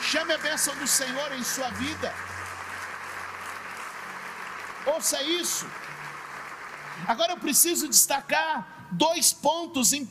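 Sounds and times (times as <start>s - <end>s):
audience applause: 0.0s - 8.5s
speech: 0.1s - 2.5s, 4.8s - 6.0s, 7.0s - 10.0s.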